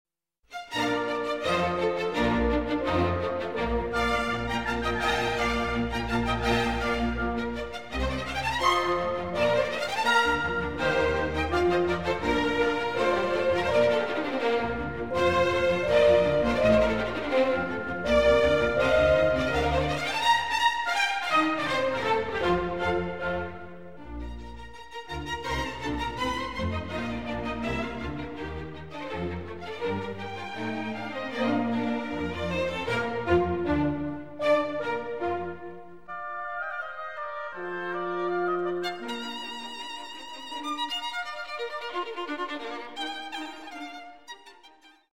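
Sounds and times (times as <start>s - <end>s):
violin and orchestra playing a fast piece: 0.5s - 45.1s.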